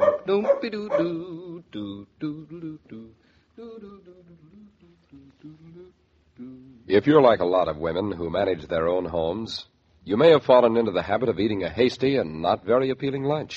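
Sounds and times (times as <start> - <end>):
dog barking and yelping excitedly: 0.0 - 1.2
speech: 0.3 - 13.5.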